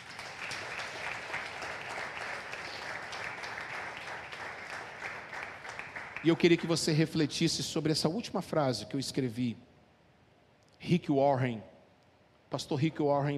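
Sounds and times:
audience applauding: 0:00.0 - 0:06.8
speech: 0:06.2 - 0:09.7, 0:10.9 - 0:11.7, 0:12.5 - 0:13.3.

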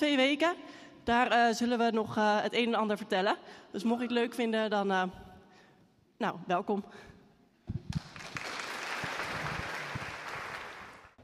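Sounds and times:
speech: 0:00.0 - 0:05.3, 0:06.2 - 0:07.1
audience applause: 0:07.9 - 0:11.2.

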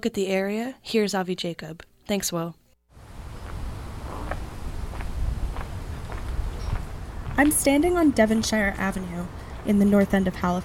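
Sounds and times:
speech: 0:00.0 - 0:02.6, 0:07.4 - 0:10.6
low outdoor noise: 0:02.9 - 0:10.6
footsteps walking along Devonshire Avenue in the North End of Halifax: 0:03.4 - 0:07.9.

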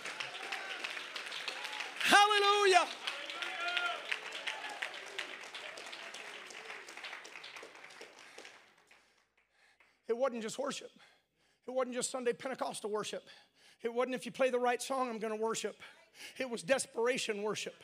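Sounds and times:
audience clapping hands: 0:00.0 - 0:09.9
speech: 0:02.4 - 0:03.0, 0:10.3 - 0:11.1, 0:11.7 - 0:17.8.

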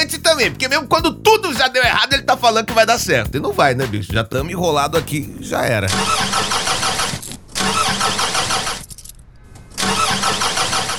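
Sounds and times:
speech: 0:00.1 - 0:06.5
car engine cranking but failing to start: 0:05.9 - 0:10.9.

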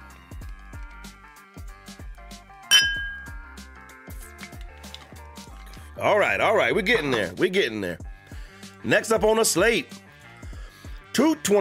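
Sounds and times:
glasses clinking in a toast: 0:02.7 - 0:03.5
speech: 0:06.0 - 0:08.1, 0:08.8 - 0:10.0, 0:11.2 - 0:11.5.

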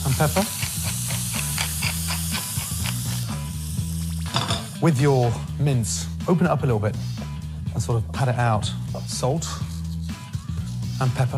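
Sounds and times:
speech: 0:00.0 - 0:00.6, 0:04.8 - 0:07.2, 0:07.8 - 0:09.7, 0:11.0 - 0:11.3
onions and garlic sizzling in hot olive oil in a pan: 0:00.0 - 0:04.2
rhythmic music: 0:00.0 - 0:11.3.

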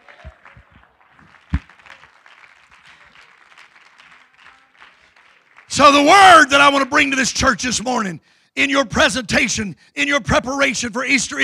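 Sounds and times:
audience clapping: 0:00.0 - 0:06.1
speech: 0:05.8 - 0:11.4.

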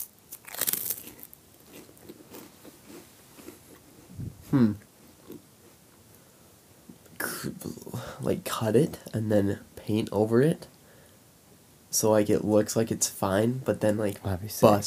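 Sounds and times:
crunchy snack being bitten and chewed: 0:00.0 - 0:03.9
speech: 0:04.5 - 0:04.9, 0:08.2 - 0:10.7, 0:11.9 - 0:14.8.

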